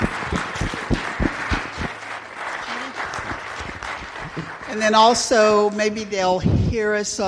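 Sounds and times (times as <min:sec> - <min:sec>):
applause: 0:00.0 - 0:05.5
speech: 0:04.8 - 0:07.2.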